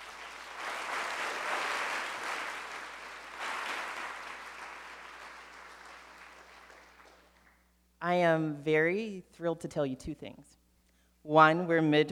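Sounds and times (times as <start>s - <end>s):
audience applause: 0.0s - 7.6s
speech: 8.0s - 10.6s, 11.3s - 12.1s.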